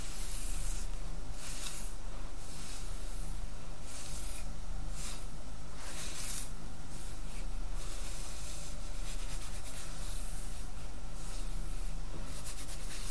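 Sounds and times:
hair play and brushing: 0.0 - 13.1.

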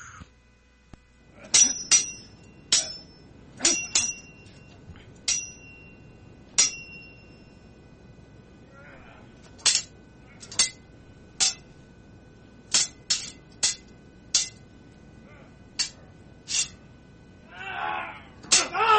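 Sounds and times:
sword blades clashing: 1.4 - 4.7, 5.3 - 5.9, 6.6 - 7.3, 9.6 - 10.8, 11.4 - 11.7, 12.7 - 14.6, 15.8 - 16.8, 18.4 - 18.9.

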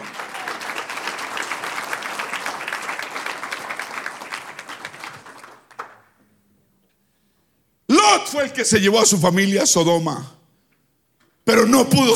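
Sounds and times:
audience applause: 0.0 - 6.2
speech: 8.3 - 10.4, 11.8 - 12.1.

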